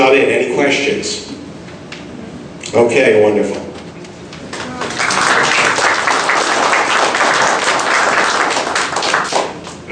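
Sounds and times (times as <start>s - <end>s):
speech: 0.0s - 1.4s, 2.7s - 3.6s
audience applause: 4.5s - 9.8s.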